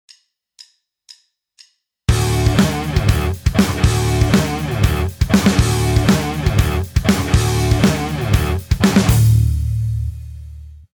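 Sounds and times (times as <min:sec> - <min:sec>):
backing music: 0:02.1 - 0:10.4.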